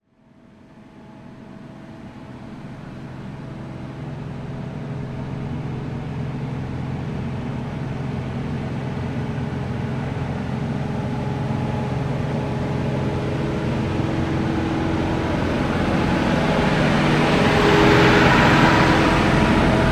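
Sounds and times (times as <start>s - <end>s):
Claas Dominator combine harvester passing by fast at constant speed: 4.0s - 19.9s.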